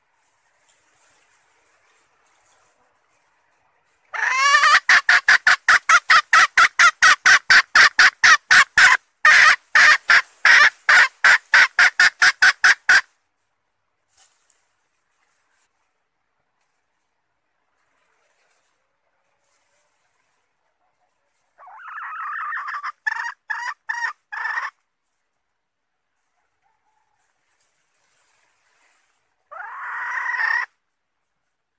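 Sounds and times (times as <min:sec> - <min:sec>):
red junglefowl hen clucking: 0:04.1 - 0:13.1, 0:20.9 - 0:24.8, 0:29.5 - 0:30.8.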